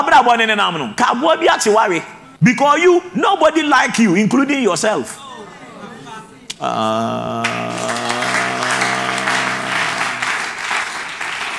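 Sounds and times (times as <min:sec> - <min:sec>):
speech: 0:00.0 - 0:05.2, 0:06.6 - 0:07.6
laughter: 0:05.0 - 0:11.2
audience clapping: 0:07.3 - 0:11.5.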